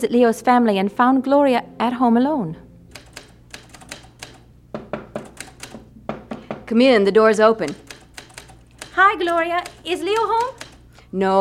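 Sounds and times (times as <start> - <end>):
speech: 0.0 - 2.6, 6.7 - 7.9, 9.1 - 11.4
mechanical typewriter keys clacking: 2.9 - 4.4, 5.2 - 5.9, 7.4 - 10.9.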